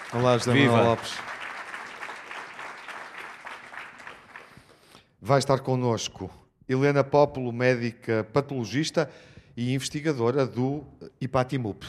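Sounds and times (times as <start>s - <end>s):
audience applause: 0.0s - 4.9s
speech: 0.1s - 1.3s, 5.2s - 11.8s.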